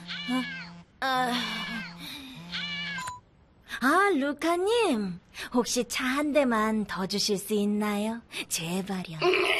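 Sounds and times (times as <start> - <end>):
cat meowing: 0.0 - 0.7, 1.7 - 3.0
speech: 4.2 - 9.5.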